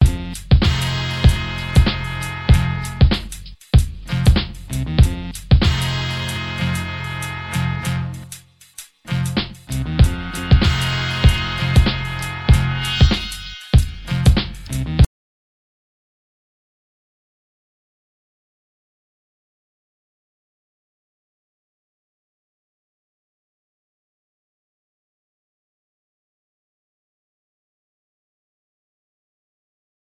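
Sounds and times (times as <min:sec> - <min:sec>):
music beat: 0:00.0 - 0:15.0.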